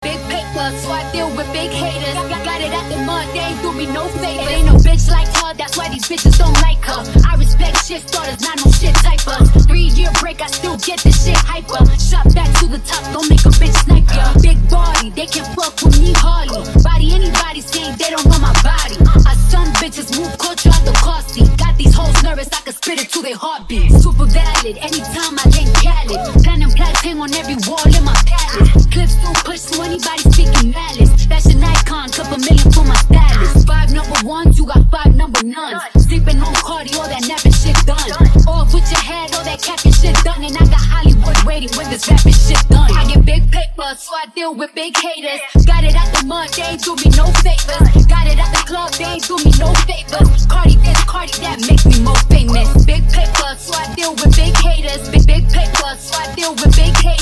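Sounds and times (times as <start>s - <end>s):
hip hop music: 0.0s - 57.2s.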